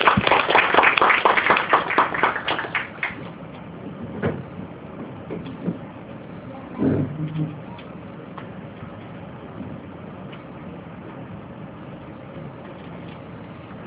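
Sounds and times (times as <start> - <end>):
audience applause: 0.0 - 3.3
low noise: 0.0 - 13.8.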